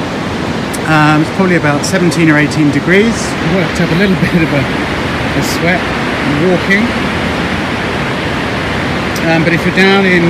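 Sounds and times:
rushing water of a river below: 0.0s - 10.2s
speech: 0.9s - 7.2s, 9.3s - 10.2s.

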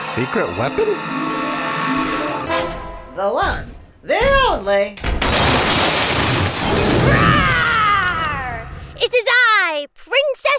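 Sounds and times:
speech: 0.2s - 2.2s, 3.2s - 5.1s, 9.0s - 10.5s
door being smashed: 5.0s - 7.8s.

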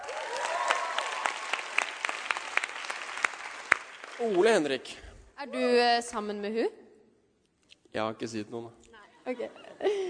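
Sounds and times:
small group clapping: 0.0s - 4.8s
speech: 4.2s - 6.8s, 7.9s - 10.0s.

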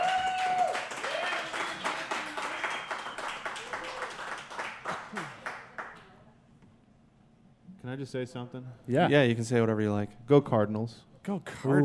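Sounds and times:
audience applause: 0.0s - 6.0s
speech: 7.9s - 11.8s.

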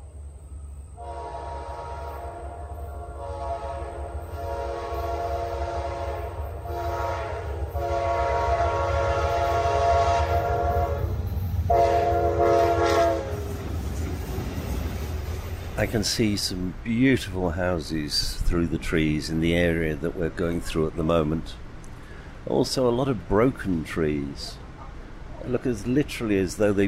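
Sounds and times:
passenger train rolling along with heavy low rumble: 0.0s - 26.8s
rhythmic rail noise: 0.0s - 26.8s
passenger train horn tones: 1.0s - 13.7s
speech: 15.8s - 21.6s, 22.5s - 24.6s, 25.4s - 26.8s.

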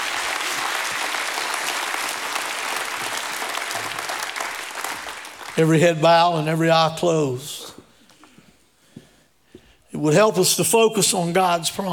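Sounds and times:
audience applause: 0.0s - 5.8s
speech: 5.6s - 7.6s, 10.0s - 11.9s.

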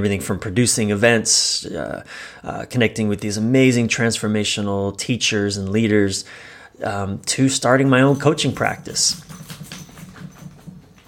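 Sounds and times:
speech: 0.0s - 9.5s
dog shaking itself off: 8.1s - 11.0s.

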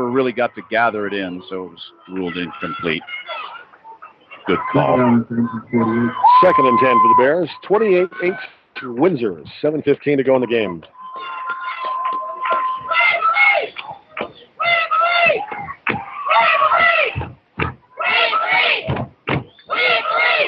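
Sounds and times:
football fans cheering and chanting: 0.0s - 19.0s, 19.6s - 20.4s
speech: 0.1s - 3.6s, 4.5s - 11.4s.

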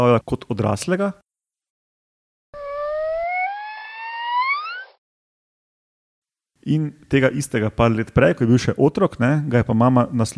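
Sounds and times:
speech: 0.0s - 1.2s, 6.6s - 10.3s
dolphin signature whistle: 2.6s - 5.0s.

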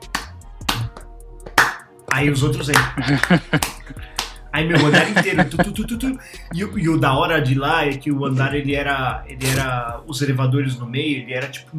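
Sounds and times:
person clapping hands in a slow uneven rhythm: 0.0s - 5.4s
speech: 2.1s - 11.7s
laughter: 2.7s - 4.0s, 4.6s - 6.8s.

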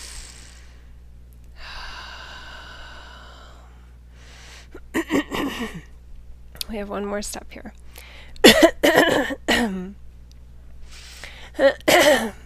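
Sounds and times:
person taking a deep breath during a guided meditation: 0.0s - 1.0s, 1.6s - 4.8s, 10.8s - 11.6s
speech: 5.6s - 5.9s, 6.7s - 7.8s, 8.6s - 10.0s, 11.6s - 12.4s.

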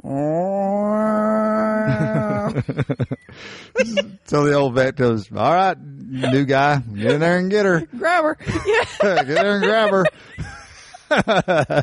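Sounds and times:
man imitating a cat growl: 0.0s - 2.6s
laughter: 1.8s - 4.2s, 6.0s - 11.8s
speech: 1.9s - 10.4s, 11.1s - 11.8s.

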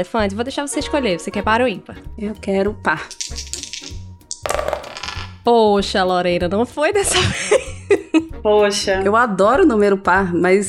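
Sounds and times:
speech: 0.0s - 3.6s, 5.5s - 10.6s
die being rolled: 4.5s - 5.4s
laughter: 7.1s - 8.2s.

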